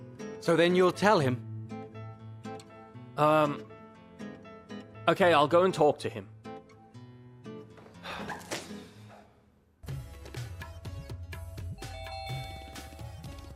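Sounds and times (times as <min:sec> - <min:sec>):
speech: 0:00.4 - 0:01.5, 0:03.2 - 0:03.7, 0:05.0 - 0:06.3
two-tone doorbell chime: 0:11.8 - 0:13.5.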